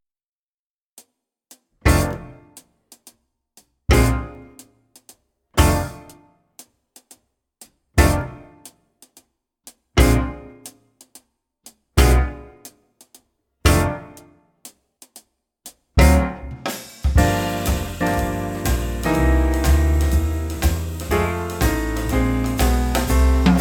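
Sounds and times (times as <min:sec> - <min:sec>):
jazz club trumpet play-along: 0:01.8 - 0:02.6, 0:03.9 - 0:04.6, 0:05.6 - 0:06.2, 0:08.0 - 0:08.6, 0:13.6 - 0:14.3, 0:16.0 - 0:23.5.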